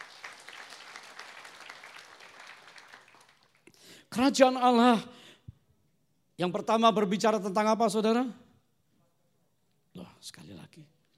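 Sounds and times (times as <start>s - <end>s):
audience applause: 0.0s - 3.6s
speech: 4.2s - 5.2s, 6.4s - 8.4s.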